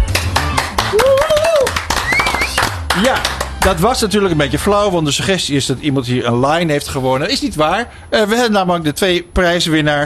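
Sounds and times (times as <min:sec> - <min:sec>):
applause in a radio studio: 0:00.0 - 0:03.8
speech: 0:03.0 - 0:10.0.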